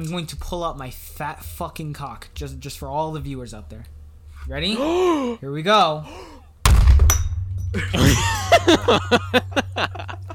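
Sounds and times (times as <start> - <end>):
speech: 0.0 - 6.3, 7.7 - 10.3
glass shattering: 6.7 - 8.8
laughter: 7.8 - 10.3.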